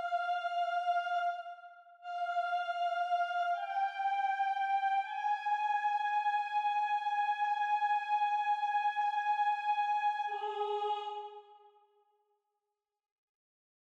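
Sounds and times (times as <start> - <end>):
soprano singing: 0.0 - 1.4, 2.0 - 11.6.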